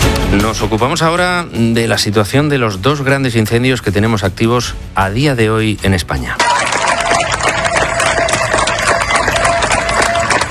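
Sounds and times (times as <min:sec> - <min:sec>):
speech: 0:00.3 - 0:06.6
neighbours applauding in Niebla, Huelva: 0:06.4 - 0:10.4.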